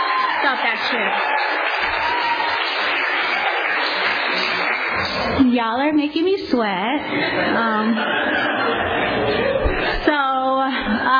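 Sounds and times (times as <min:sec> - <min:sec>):
audience clapping at a live show: 0:00.0 - 0:05.5
speech: 0:00.4 - 0:02.2, 0:04.4 - 0:09.0
laughter: 0:07.1 - 0:11.1.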